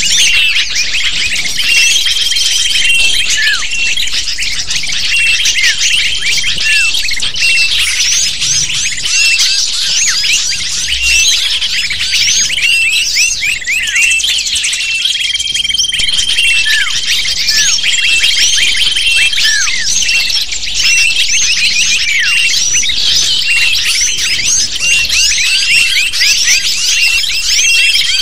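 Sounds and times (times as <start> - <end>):
lovebird flock chattering: 0.0 - 28.2.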